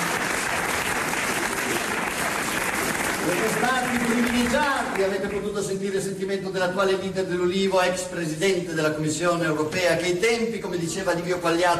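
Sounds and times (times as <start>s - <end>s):
audience applause: 0.0s - 5.5s
speech: 3.3s - 11.7s.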